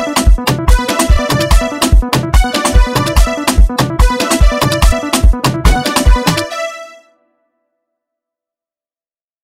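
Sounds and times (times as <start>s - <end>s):
dance beat: 0.0s - 6.7s.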